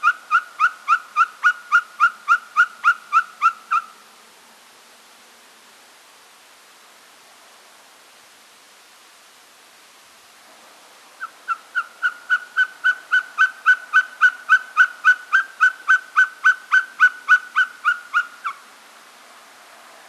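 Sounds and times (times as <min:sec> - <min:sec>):
Mochuelo patagon Glaucidium nana call: 0:00.0 - 0:04.0, 0:11.2 - 0:18.6.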